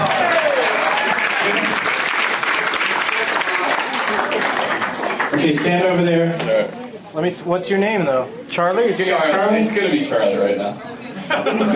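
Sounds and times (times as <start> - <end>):
people clapping: 0.0 - 6.0
speech: 5.4 - 11.7
laughter: 11.1 - 11.7.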